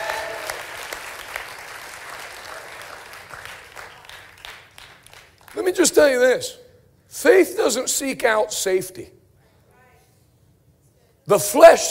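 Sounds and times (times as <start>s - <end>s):
audience clapping: 0.0s - 6.0s
speech: 5.6s - 6.6s, 7.2s - 9.2s, 11.3s - 11.9s.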